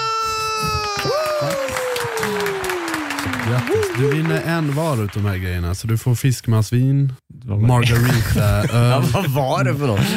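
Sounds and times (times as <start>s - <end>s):
warm applause: 0.8s - 5.6s
speech: 4.0s - 10.1s.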